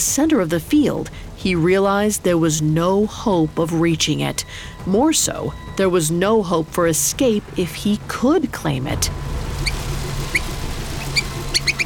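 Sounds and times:
low steady hum: 0:00.0 - 0:11.8
speech: 0:00.2 - 0:09.3
mouse squeaking: 0:09.6 - 0:11.8.

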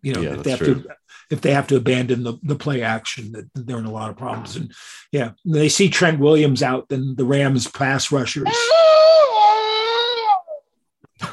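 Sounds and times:
speech: 0:00.0 - 0:09.2
wolf howling: 0:08.5 - 0:10.6.

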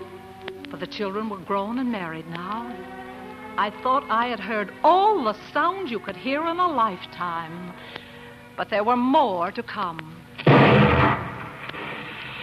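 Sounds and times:
speech: 0:00.8 - 0:03.0, 0:03.6 - 0:08.0, 0:08.6 - 0:10.2
heavy blast-like thud of oil drilling: 0:10.4 - 0:12.2.

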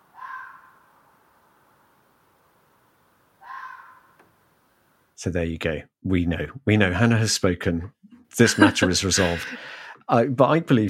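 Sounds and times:
fox calls: 0:00.1 - 0:01.0, 0:03.4 - 0:04.2
speech: 0:05.2 - 0:10.8
laughter: 0:08.4 - 0:09.8.

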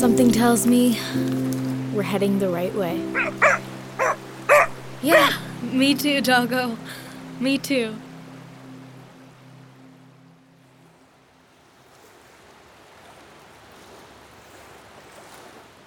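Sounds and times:
speech: 0:00.0 - 0:03.5, 0:05.0 - 0:08.0
ocean waves rushing and splashing against a boat: 0:00.8 - 0:15.8
boat engine hum: 0:01.9 - 0:11.4.

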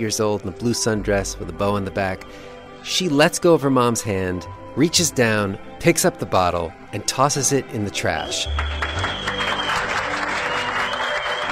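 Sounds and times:
speech: 0:00.0 - 0:09.0
crowd clapping: 0:08.4 - 0:11.5.

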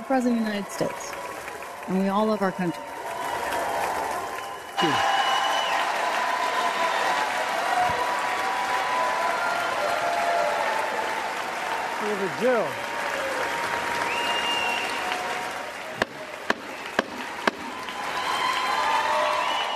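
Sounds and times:
big audience applause: 0:00.0 - 0:19.7
speech: 0:00.1 - 0:01.2, 0:01.8 - 0:02.9, 0:04.8 - 0:05.1, 0:12.2 - 0:12.9.

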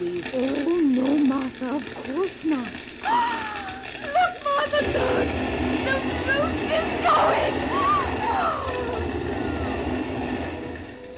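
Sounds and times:
speech: 0:00.0 - 0:03.7
fire engine approaching: 0:00.0 - 0:11.1.

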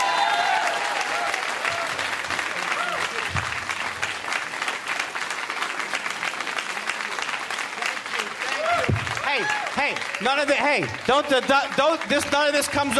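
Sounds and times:
crowd shouts: 0:00.0 - 0:02.0, 0:08.5 - 0:09.9
audience applause at a comedy show: 0:00.0 - 0:12.9
speech: 0:10.2 - 0:12.9.

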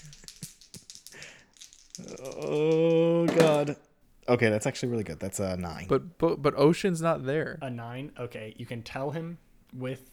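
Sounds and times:
dice being rolled: 0:00.0 - 0:03.8
speech: 0:02.0 - 0:10.1.

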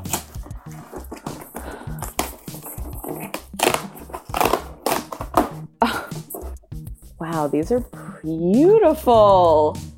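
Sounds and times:
cardboard box being opened: 0:00.0 - 0:05.6
speech: 0:07.4 - 0:09.8.

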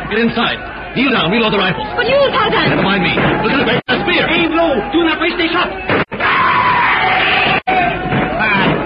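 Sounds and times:
speech: 0:00.1 - 0:06.0
screaming horde charging: 0:04.0 - 0:08.7.

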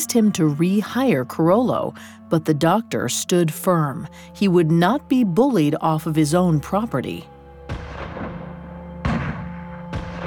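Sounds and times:
speech: 0:00.0 - 0:07.8
gunshots at the Fondo Riella: 0:07.8 - 0:10.2.

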